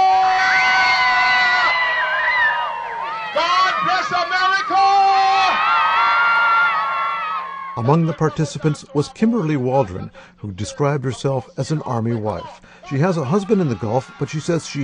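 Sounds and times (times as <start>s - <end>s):
rally crowd cheering, shouting, whooping and screaming: 0.0s - 8.4s, 12.9s - 14.8s
laughter: 7.8s - 10.1s, 11.9s - 14.8s
speech: 7.8s - 14.8s.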